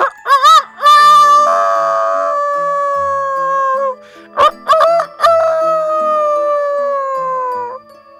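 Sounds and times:
rooster crowing: 0:00.0 - 0:07.8.

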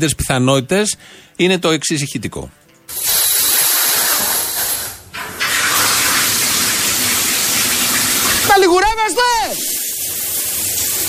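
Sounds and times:
speech: 0:00.0 - 0:03.1
shower water spraying: 0:02.9 - 0:11.0.

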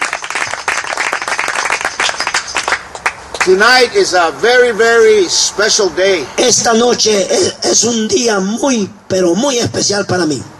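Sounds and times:
bilingual church congregation applauding: 0:00.0 - 0:03.6
speech: 0:03.4 - 0:10.5.

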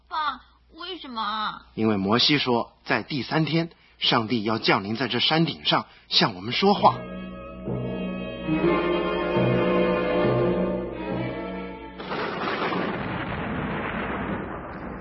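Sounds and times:
speech: 0:00.9 - 0:07.1
brassy horn-like tone: 0:06.8 - 0:11.8
thunder rumbling on the mountain: 0:12.0 - 0:14.9.

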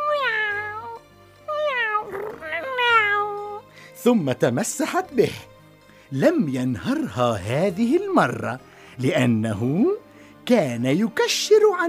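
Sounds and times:
cat meowing: 0:00.0 - 0:03.7
speech: 0:04.0 - 0:05.5, 0:06.1 - 0:11.8.

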